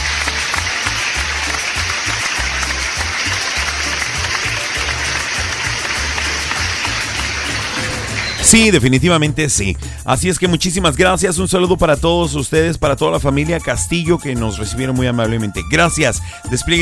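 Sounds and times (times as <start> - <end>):
audience applause: 0.0 - 8.8
speech: 8.5 - 16.8.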